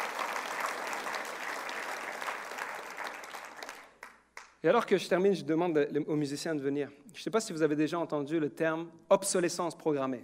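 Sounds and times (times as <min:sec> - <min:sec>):
audience applauding: 0:00.0 - 0:04.6
speech: 0:04.6 - 0:10.2.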